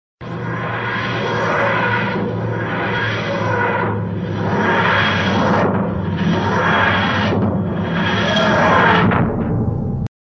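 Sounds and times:
TARDIS materialisation sound: 0.2s - 10.1s.

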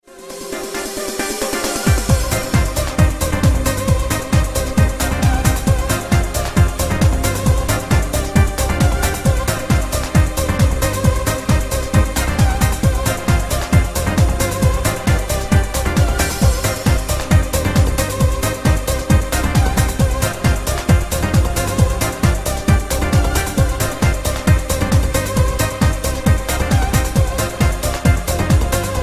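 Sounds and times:
classic trance music: 0.0s - 29.0s.

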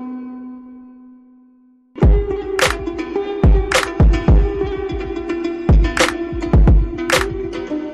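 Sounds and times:
komuz remix: 2.0s - 7.9s.

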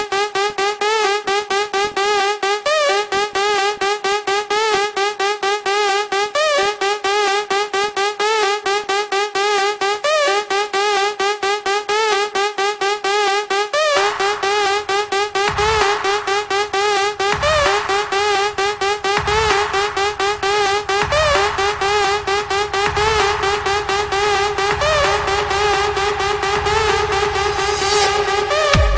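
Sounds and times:
electronica mix: 0.0s - 28.9s.

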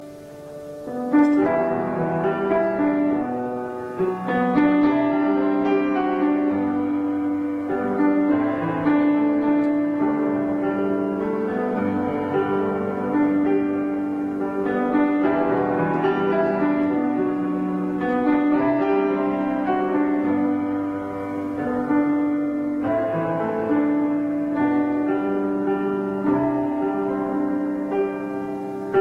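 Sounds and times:
piano: 0.0s - 29.0s.

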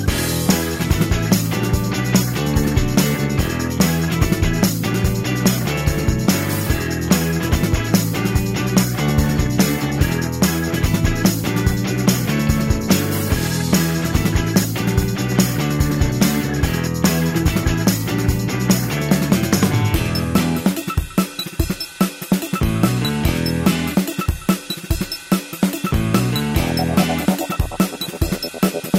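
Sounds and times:
funk music: 0.0s - 28.9s.

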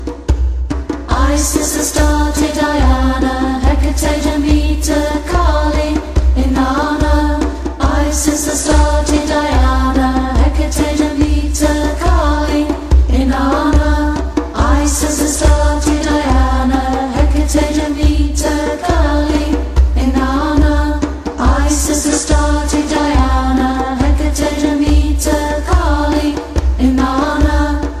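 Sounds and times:
Wicca goddess chant: 1.1s - 27.9s.

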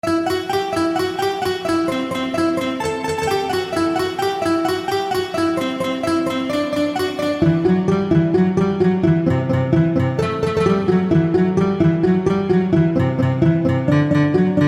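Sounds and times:
acoustic guitar: 0.0s - 14.6s.

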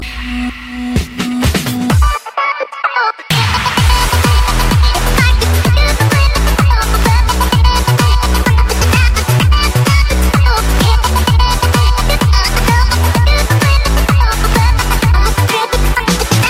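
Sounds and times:
cool electronica music: 0.0s - 2.4s, 3.3s - 16.4s.

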